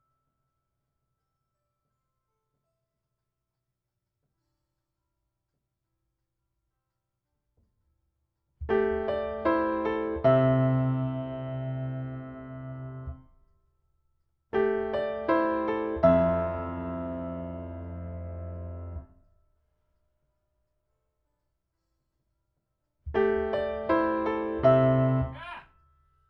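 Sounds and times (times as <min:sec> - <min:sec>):
piano: 0:08.6 - 0:13.4, 0:14.5 - 0:19.4, 0:23.1 - 0:25.6.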